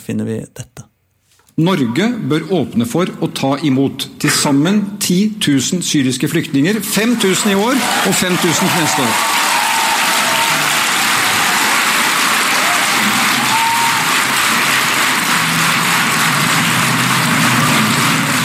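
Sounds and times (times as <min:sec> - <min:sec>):
speech: 0:00.0 - 0:00.8, 0:01.6 - 0:09.4
audience applause: 0:07.0 - 0:18.4.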